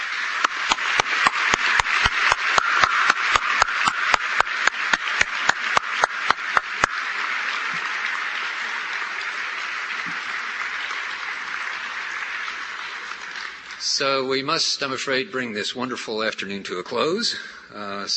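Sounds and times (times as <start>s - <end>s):
audience applause: 0.0s - 14.5s
speech: 14.0s - 18.1s.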